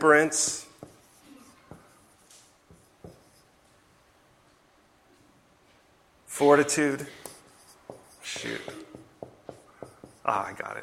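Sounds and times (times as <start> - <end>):
speech: 0.1 - 0.6, 6.4 - 7.2, 8.4 - 8.9, 10.3 - 10.8
pen scratching on paper writing a list by hand: 0.3 - 3.5, 7.2 - 10.6.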